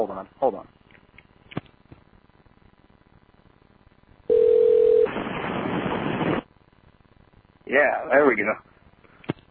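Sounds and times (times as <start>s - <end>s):
speech: 0.0s - 0.8s, 7.7s - 8.7s
phone call static: 1.6s - 8.6s.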